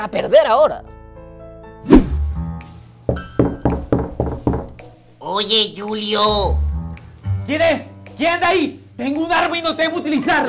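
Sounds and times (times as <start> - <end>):
speech: 0.0 - 0.9, 5.3 - 6.6, 7.5 - 10.4
knocking on a door: 3.1 - 5.0.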